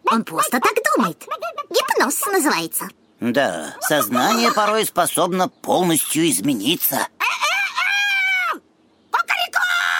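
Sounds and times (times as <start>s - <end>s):
speech: 0.1s - 7.1s
laughter: 3.8s - 4.9s
hypnotized person imitating a rooster crowing: 7.2s - 8.6s.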